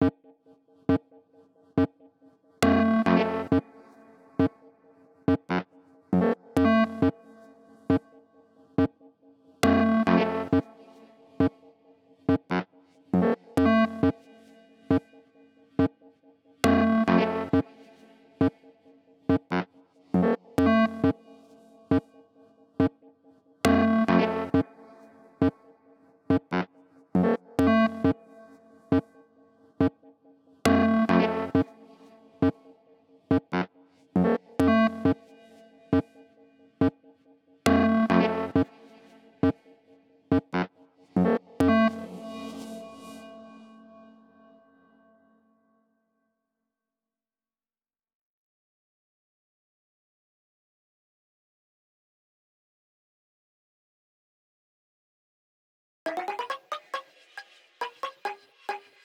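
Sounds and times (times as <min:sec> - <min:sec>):
cave-like synthesizer: 0:02.6 - 0:09.0, 0:09.6 - 0:23.1, 0:23.7 - 0:30.0, 0:30.7 - 0:36.9, 0:37.7 - 0:45.1, 0:56.1 - 0:59.0.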